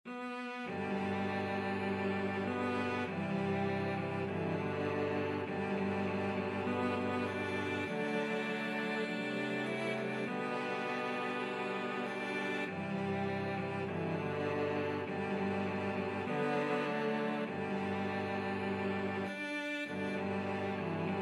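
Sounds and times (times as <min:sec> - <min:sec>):
cello quartet: 0:00.1 - 0:21.2.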